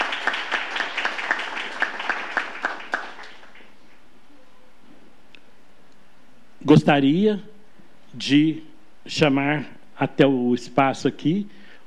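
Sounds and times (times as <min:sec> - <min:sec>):
audience applause: 0:00.0 - 0:03.8
speech: 0:06.6 - 0:07.5, 0:08.2 - 0:11.6.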